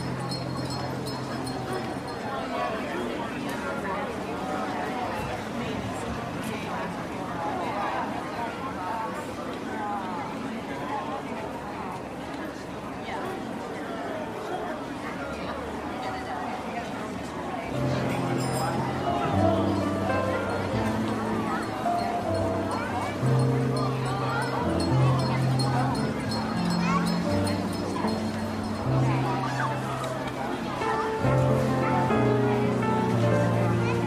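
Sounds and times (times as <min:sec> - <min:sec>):
market crowd chatter: 0:00.0 - 0:34.0
jazz piano: 0:17.8 - 0:34.0.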